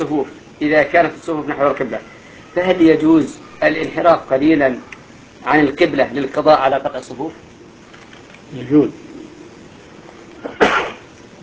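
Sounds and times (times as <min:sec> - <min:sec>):
speech: 0:00.0 - 0:07.5, 0:08.5 - 0:09.1
person sneezing during a religious lecture: 0:10.4 - 0:11.1.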